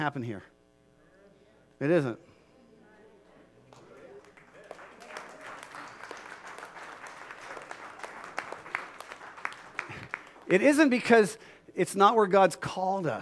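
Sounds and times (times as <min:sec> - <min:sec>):
speech: 0:00.0 - 0:00.6, 0:01.8 - 0:02.3, 0:10.5 - 0:13.2
audience clapping: 0:03.7 - 0:11.2
audience cheering: 0:04.4 - 0:10.4.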